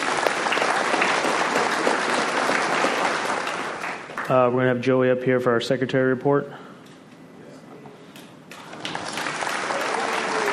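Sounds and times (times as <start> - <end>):
audience applause: 0.0 - 4.3, 8.5 - 10.5
speech: 4.3 - 6.6.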